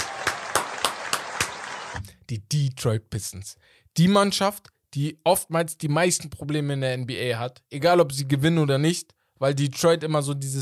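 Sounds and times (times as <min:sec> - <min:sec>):
applause: 0:00.0 - 0:02.0
speech: 0:02.3 - 0:10.5.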